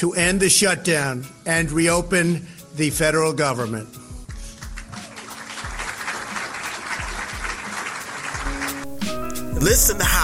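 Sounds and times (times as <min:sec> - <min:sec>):
speech: 0:00.0 - 0:04.0, 0:09.6 - 0:10.2
applause in played announcement recording: 0:04.6 - 0:08.9.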